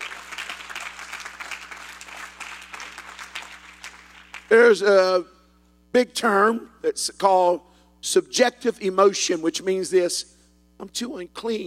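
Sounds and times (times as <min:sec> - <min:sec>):
audience clapping: 0:00.0 - 0:04.6
speech: 0:04.5 - 0:05.3, 0:06.0 - 0:11.6.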